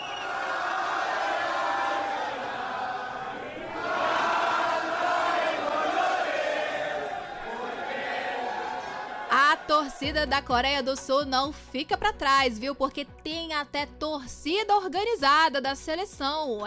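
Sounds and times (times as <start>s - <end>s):
Mexican football fans chanting: 0.0s - 10.2s
speech: 9.7s - 16.6s.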